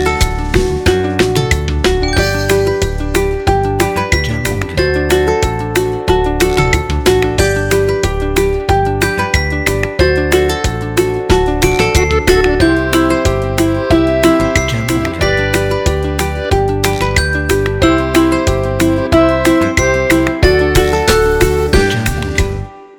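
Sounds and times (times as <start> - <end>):
positive acoustic music loop: 0.0 - 22.9.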